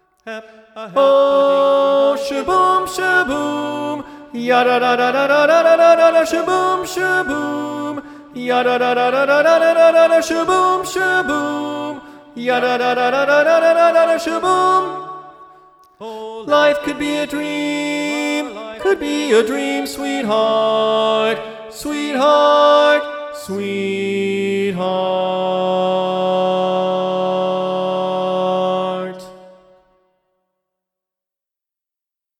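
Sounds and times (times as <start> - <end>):
SATB choir singing with predominant tenor: 0.3 - 29.6.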